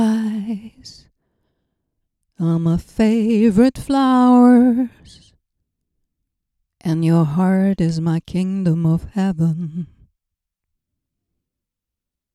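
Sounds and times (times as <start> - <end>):
person singing close-lipped into a dynamic microphone: 0.0 - 1.0, 2.4 - 5.3, 6.8 - 10.0.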